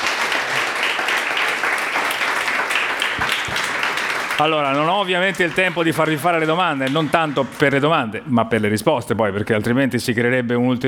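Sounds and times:
audience applause: 0:00.0 - 0:08.2
speech: 0:04.4 - 0:10.8.

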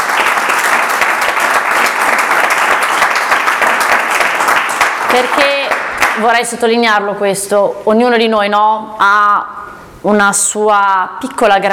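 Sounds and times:
audience applause: 0:00.0 - 0:06.2
speech: 0:05.2 - 0:11.7.

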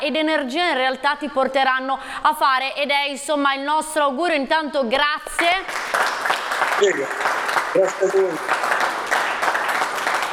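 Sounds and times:
speech: 0:00.0 - 0:06.2, 0:06.8 - 0:08.7
studio audience applause: 0:05.4 - 0:10.3.

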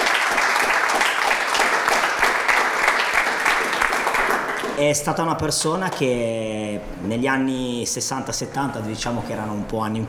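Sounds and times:
audience applause: 0:00.0 - 0:04.8
speech: 0:04.8 - 0:10.0.

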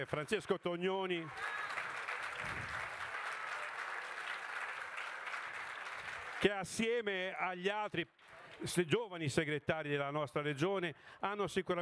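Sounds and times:
speech: 0:00.0 - 0:01.7, 0:06.4 - 0:11.8
audience applause: 0:01.2 - 0:06.6.

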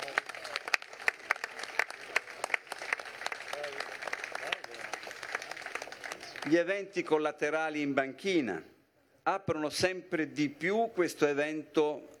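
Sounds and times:
crowd applause: 0:00.0 - 0:06.5
speech: 0:06.5 - 0:08.7, 0:09.3 - 0:12.1.

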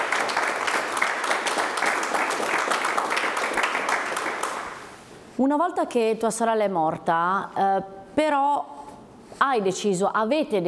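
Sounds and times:
audience applause: 0:00.0 - 0:05.0
speech: 0:05.4 - 0:08.8, 0:09.4 - 0:10.6.

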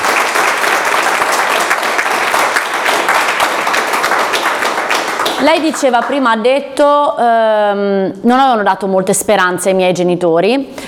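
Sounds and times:
audience applause: 0:00.0 - 0:06.2
speech: 0:05.4 - 0:10.8.

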